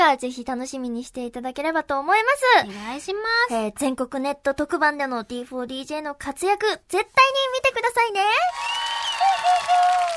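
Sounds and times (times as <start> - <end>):
speech: 0.1 - 10.1
audience cheering: 8.5 - 10.1.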